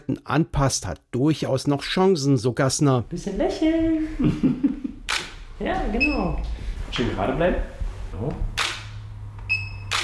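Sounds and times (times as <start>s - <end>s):
speech: 0.1s - 4.9s, 5.6s - 8.6s
laughter: 4.2s - 5.1s
camera shutter clicks while taking student ID photos: 5.1s - 5.4s, 8.6s - 8.9s.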